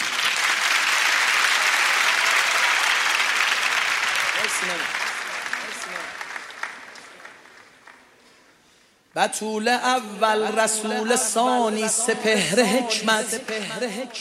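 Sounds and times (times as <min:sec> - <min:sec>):
audience applauding at a poetry recitation gathering: 0:00.0 - 0:08.6
speech: 0:04.6 - 0:05.0, 0:09.2 - 0:14.2.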